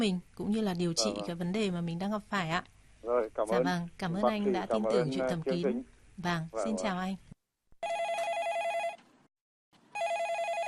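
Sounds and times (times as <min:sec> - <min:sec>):
speech: 0:00.0 - 0:08.0
telephone ringing as a listener calls in to a radio show: 0:07.8 - 0:09.0, 0:09.9 - 0:10.6.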